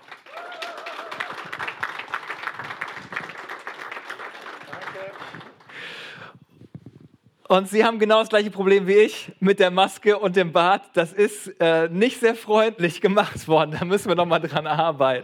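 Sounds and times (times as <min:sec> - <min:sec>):
audience applause: 0:00.0 - 0:06.2
speech: 0:07.5 - 0:15.2.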